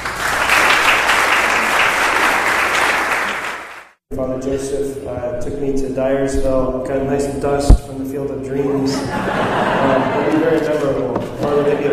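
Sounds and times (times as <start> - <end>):
audience applause welcoming a Franciscan priest as speaker: 0.0 - 4.0
speech: 4.2 - 11.9
laughter: 8.8 - 11.9.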